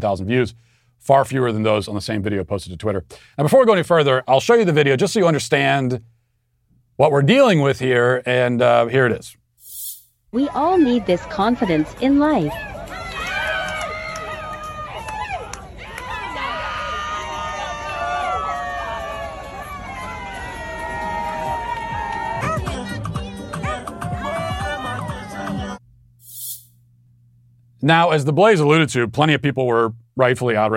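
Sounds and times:
speech: 0:00.0 - 0:06.1, 0:07.0 - 0:09.4, 0:10.3 - 0:12.8, 0:27.8 - 0:30.7
adults shouting: 0:10.4 - 0:25.8
crowd of adults cheering and applauding: 0:10.4 - 0:25.8.

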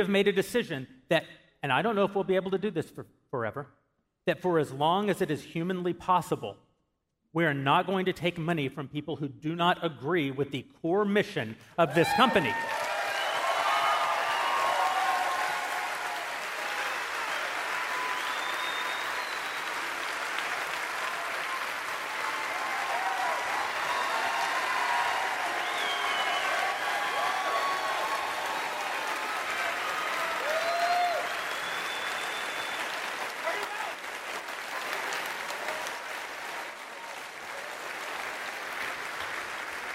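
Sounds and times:
speech: 0:00.0 - 0:06.6, 0:07.3 - 0:12.8
audience applause: 0:11.9 - 0:39.9.

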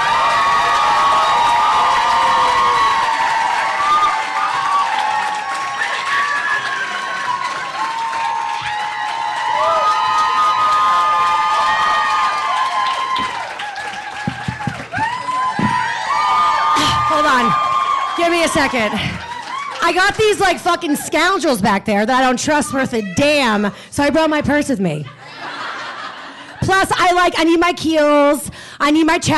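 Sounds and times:
audience applause and cheering: 0:00.0 - 0:21.0
speech: 0:18.5 - 0:19.2, 0:19.8 - 0:25.2, 0:26.7 - 0:29.3
laughter: 0:25.0 - 0:26.7.

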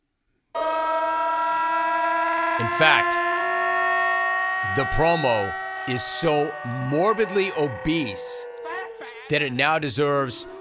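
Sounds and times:
electronic alarm siren sound effect: 0:00.6 - 0:10.6
speech: 0:02.6 - 0:03.3, 0:04.6 - 0:08.5, 0:09.3 - 0:10.6.

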